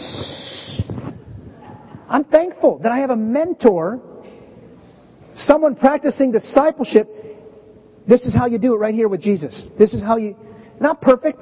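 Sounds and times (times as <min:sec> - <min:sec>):
air hissing from balloon: 0:00.0 - 0:01.2
speech: 0:02.1 - 0:04.1, 0:05.4 - 0:07.2, 0:08.0 - 0:11.3.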